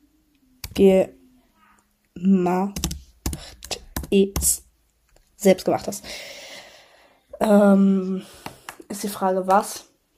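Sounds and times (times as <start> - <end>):
speech: 0.8 - 1.2, 2.2 - 2.8, 4.1 - 4.6, 5.4 - 6.4, 7.4 - 9.9
typing on a computer keyboard: 2.7 - 4.6.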